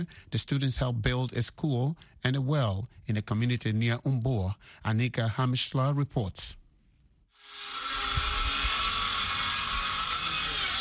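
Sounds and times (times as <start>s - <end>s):
speech: 0.0s - 6.6s
power drills roaring in the village of Guidemartin: 7.4s - 10.7s.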